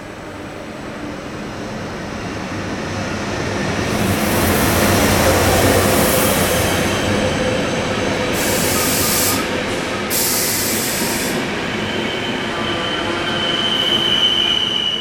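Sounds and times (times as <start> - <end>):
ÖBB Nightjet night train rolling on rails: 0.0 - 14.9
night train wheels squealing on rails: 3.9 - 14.9.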